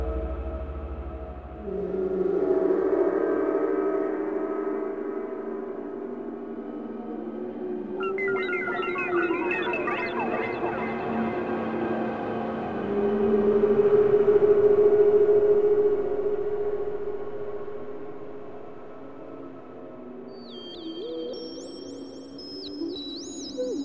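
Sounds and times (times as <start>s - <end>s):
space ambience: 0.0s - 22.5s.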